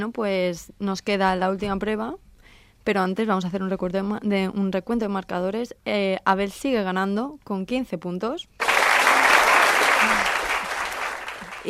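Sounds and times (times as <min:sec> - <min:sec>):
speech: 0:00.0 - 0:08.7
group applause: 0:08.6 - 0:11.6.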